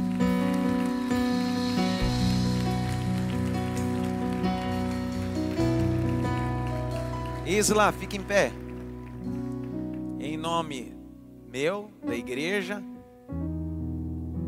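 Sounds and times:
audience applauding: 0.0 - 10.8
speech: 7.5 - 8.6, 10.4 - 13.5.

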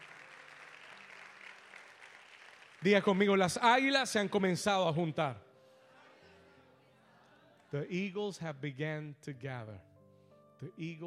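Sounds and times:
audience clapping: 0.0 - 3.9
speech: 2.8 - 5.4, 7.7 - 9.9, 10.6 - 11.0.

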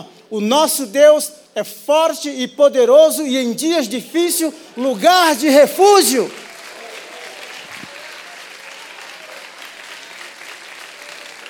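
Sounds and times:
speech: 0.0 - 6.4
large crowd applauding: 5.2 - 11.4.

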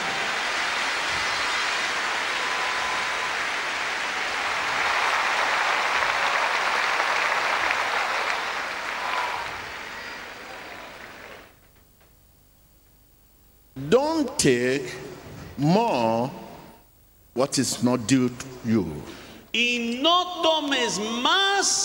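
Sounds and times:
audience applause: 0.0 - 11.6
speech: 13.9 - 15.0, 15.6 - 16.4, 17.4 - 21.8.

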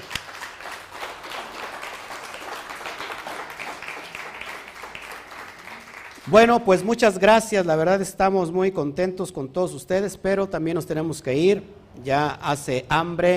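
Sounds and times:
audience applause: 0.0 - 6.5
speech: 6.3 - 13.3.

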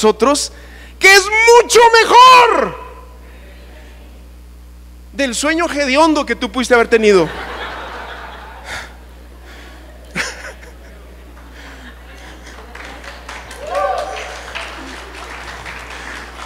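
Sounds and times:
speech: 0.0 - 2.8, 5.2 - 7.5
crowd murmur: 3.1 - 4.3, 7.3 - 16.4
soft chuckles: 8.6 - 12.9
scattered applause from an audience: 11.3 - 16.4.

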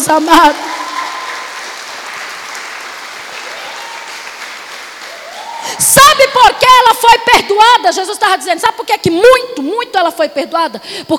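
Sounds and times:
speech: 0.0 - 0.7, 5.8 - 11.1
audience applauding: 0.0 - 5.8.

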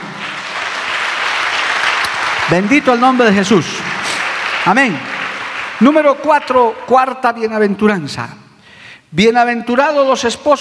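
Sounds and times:
audience applauding: 0.0 - 6.8
speech: 2.5 - 3.8, 4.6 - 5.1, 5.8 - 8.4, 9.1 - 10.6.

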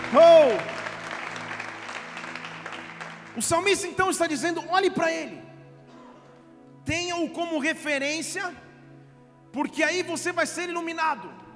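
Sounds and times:
audience applauding: 0.0 - 4.1
speech: 0.1 - 0.8, 3.4 - 5.5, 6.9 - 8.7, 9.5 - 11.4.

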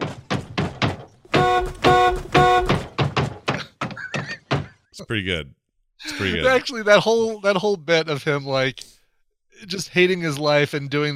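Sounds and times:
heavy blows striking a car body: 0.0 - 4.7
loud sustained car horn blasts: 1.3 - 2.9
speech: 5.0 - 9.0, 9.6 - 11.1.

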